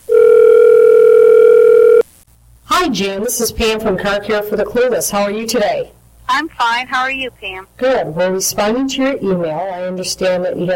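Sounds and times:
telephone dial tone: 0.1s - 2.0s
speech: 2.8s - 10.7s.

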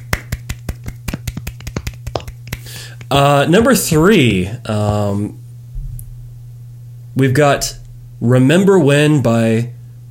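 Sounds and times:
soft polite golf clap: 0.0s - 3.7s
low steady hum: 2.4s - 9.1s
speech: 3.1s - 5.4s, 7.2s - 9.8s.

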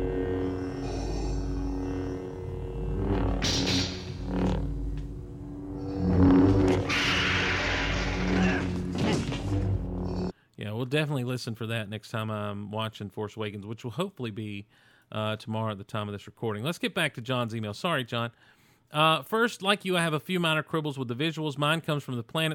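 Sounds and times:
lightsaber low steady hum: 0.0s - 10.3s
lightsaber crackling swings and clashes: 3.0s - 10.3s
speech: 10.9s - 22.5s.

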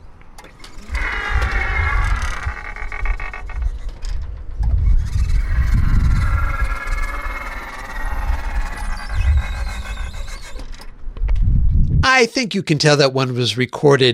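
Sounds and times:
automatic store door opener squealing: 0.0s - 11.0s
rumbling throbbing low motor drone: 0.0s - 11.8s
wind buffeting: 0.0s - 12.2s
speech: 12.2s - 14.1s.

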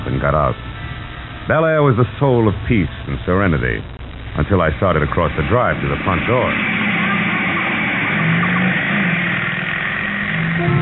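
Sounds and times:
speech: 0.1s - 0.7s, 1.5s - 6.8s
motorcycle speeding past: 6.6s - 10.8s.

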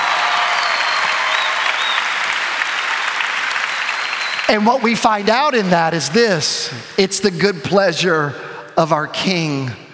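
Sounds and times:
audience clapping: 0.0s - 6.2s
speech: 4.5s - 9.8s.

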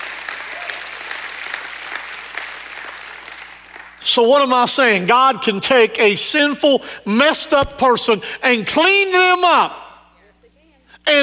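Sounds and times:
audience clapping: 0.0s - 4.0s
speech: 4.0s - 9.8s.

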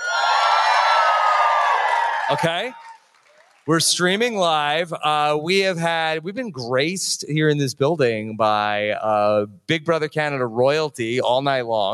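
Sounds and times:
live crowd cheering and whooping: 0.0s - 3.6s
speech: 2.3s - 2.8s, 3.6s - 11.9s.

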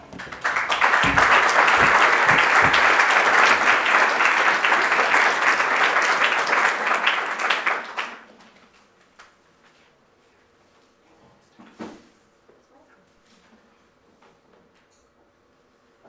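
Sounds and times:
warm applause: 0.0s - 8.3s.

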